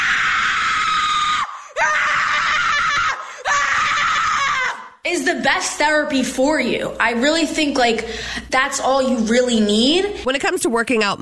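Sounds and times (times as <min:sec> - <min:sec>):
person screaming loudly: 0:00.0 - 0:05.0
speech: 0:05.2 - 0:11.2.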